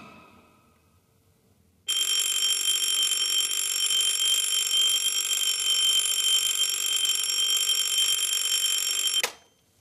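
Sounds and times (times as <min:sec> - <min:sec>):
alarm clock ringing beside a bed in the morning: 0:01.9 - 0:09.2.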